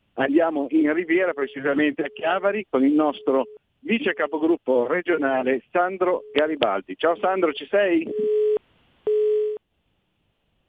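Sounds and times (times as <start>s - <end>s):
speech: 0.2s - 8.6s
telephone busy signal: 3.0s - 3.6s, 8.1s - 9.6s.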